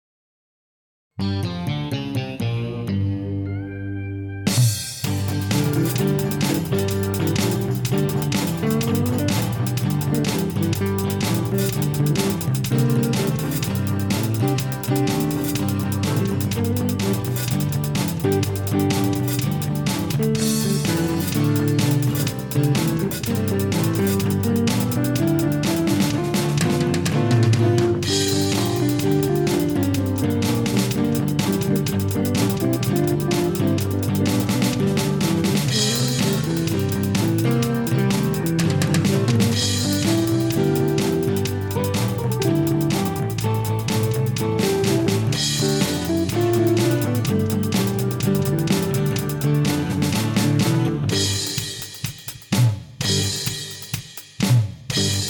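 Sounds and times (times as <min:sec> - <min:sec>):
blues music: 0:01.2 - 0:55.2.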